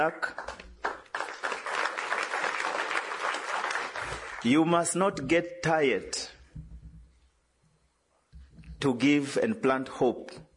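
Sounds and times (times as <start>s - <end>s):
speech: 0.0s - 0.5s, 4.4s - 6.2s, 8.8s - 10.5s
audience applause: 0.3s - 4.5s.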